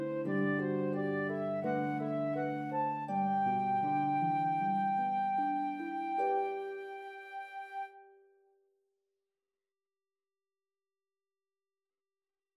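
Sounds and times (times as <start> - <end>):
harp in a duet with flute: 0.0 - 8.0
flute in a duet with harp: 0.0 - 8.2.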